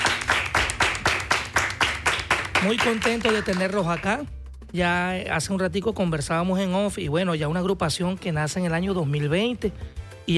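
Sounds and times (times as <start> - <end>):
youth gaita music group clapping in a radio studio: 0.0 - 4.4
speech: 2.6 - 10.3.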